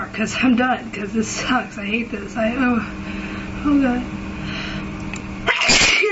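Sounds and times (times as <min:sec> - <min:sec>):
speech: 0:00.2 - 0:04.2
sneeze: 0:05.5 - 0:06.1.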